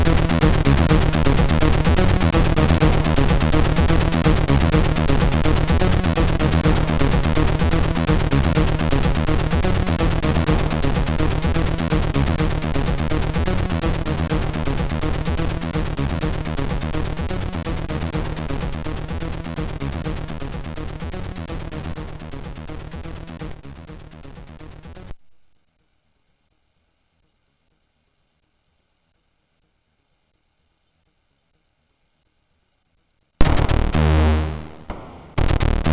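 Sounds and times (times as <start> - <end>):
MOS6581R2 SID chip synth: 0.0 - 25.1, 33.4 - 35.9.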